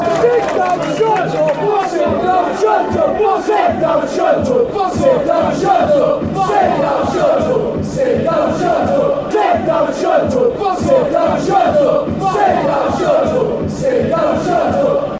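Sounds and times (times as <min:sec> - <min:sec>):
Darlington football fans chanting: 0:00.1 - 0:15.1.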